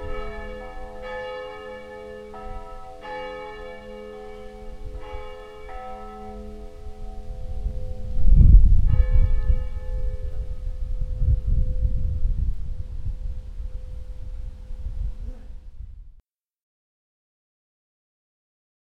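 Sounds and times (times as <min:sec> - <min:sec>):
small church bells pealing: 0:00.0 - 0:12.2.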